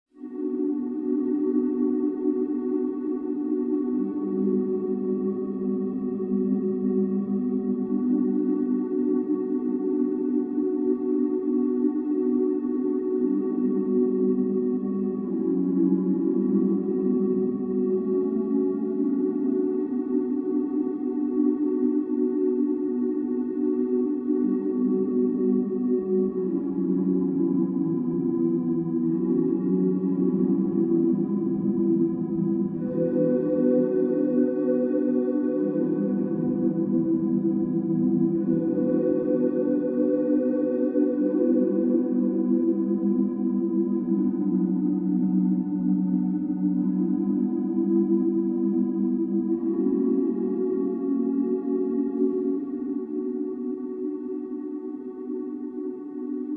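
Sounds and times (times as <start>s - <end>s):
water flute background music: 0.2s - 56.5s.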